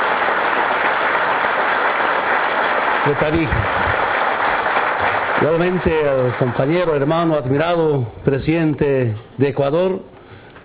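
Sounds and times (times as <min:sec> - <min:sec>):
crowd applause at an Andean presidential council summit in Tarija: 0:00.0 - 0:07.3
speech: 0:03.0 - 0:03.9, 0:05.4 - 0:10.1.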